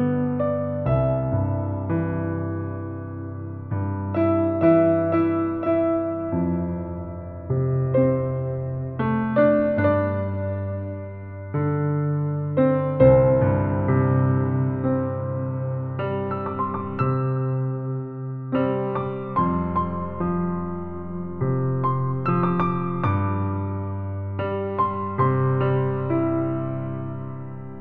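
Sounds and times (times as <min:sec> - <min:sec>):
improvised piano: 0:00.0 - 0:27.7.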